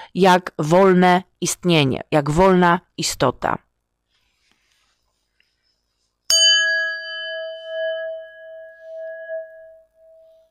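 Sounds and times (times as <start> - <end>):
speech: 0.1 - 3.6
singing bowl struck and ringing: 6.3 - 10.4.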